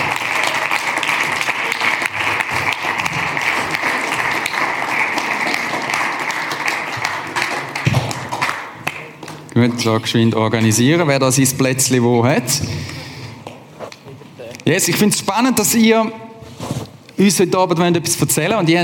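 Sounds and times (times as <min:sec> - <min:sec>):
audience applause: 0:00.0 - 0:09.5
speech: 0:09.6 - 0:13.0, 0:14.7 - 0:16.2, 0:17.2 - 0:18.8.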